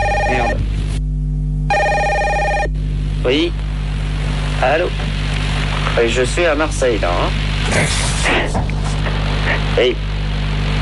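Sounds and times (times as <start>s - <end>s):
telephone ringing with an electronic trill: 0.0s - 0.6s, 1.7s - 2.7s
low steady hum: 0.0s - 10.8s
speech: 3.2s - 3.6s, 4.6s - 5.1s, 6.0s - 8.8s, 9.5s - 10.0s.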